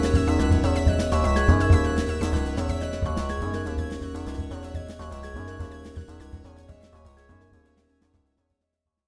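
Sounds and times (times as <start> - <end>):
music jam: 0.0 - 6.7.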